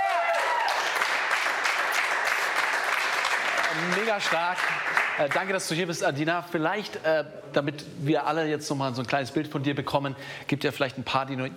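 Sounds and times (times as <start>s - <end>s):
crew applause: 0.0s - 5.5s
speech: 3.8s - 11.5s.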